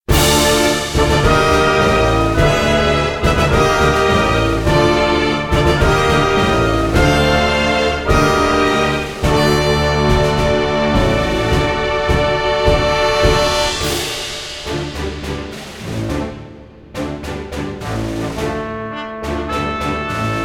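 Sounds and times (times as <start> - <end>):
dungeon background music: 0.1 - 20.4.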